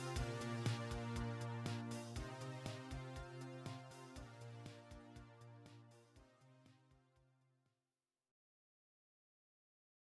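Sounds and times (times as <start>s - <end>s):
action synth music: 0.0s - 5.3s.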